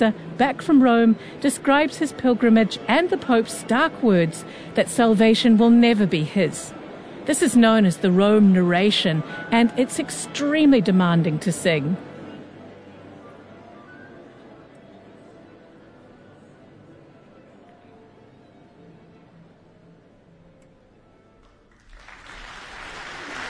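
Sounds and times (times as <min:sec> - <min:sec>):
speech: 0:00.0 - 0:12.1
crowd applause in a concert hall: 0:21.7 - 0:23.4.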